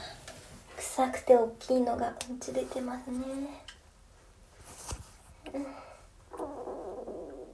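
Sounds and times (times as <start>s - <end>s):
speech: 1.0s - 3.7s
stomach rumbling during digestion: 6.3s - 7.5s.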